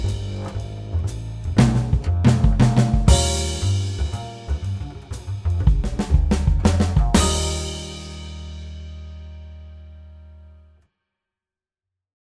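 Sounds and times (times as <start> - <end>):
swing drum fills: 0.0 - 9.7.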